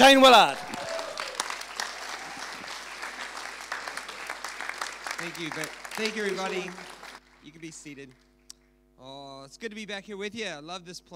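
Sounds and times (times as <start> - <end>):
speech: 0.0 - 0.6, 5.2 - 8.2, 9.0 - 11.1
standing audience applause welcoming a pastor: 0.0 - 7.5.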